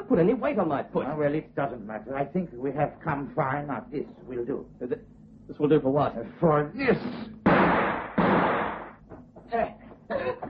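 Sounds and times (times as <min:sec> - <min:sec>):
speech: 0:00.1 - 0:07.8
gunshots from a small gun in a radio drama: 0:07.4 - 0:09.0.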